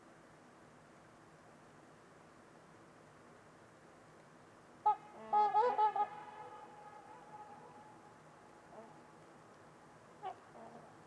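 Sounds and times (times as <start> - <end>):
Trumpeter swans honking: 4.8 - 8.0.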